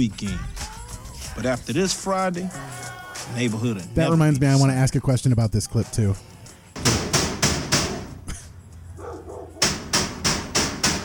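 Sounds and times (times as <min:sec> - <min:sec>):
speech: 0:00.0 - 0:00.6, 0:01.4 - 0:06.3
loud door slamming: 0:06.8 - 0:08.2, 0:09.6 - 0:11.0.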